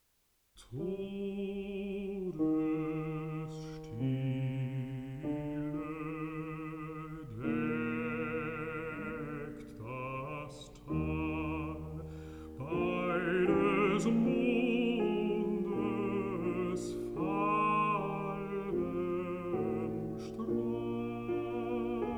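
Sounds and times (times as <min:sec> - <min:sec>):
person singing: 0:00.6 - 0:22.1
piano: 0:00.6 - 0:22.1.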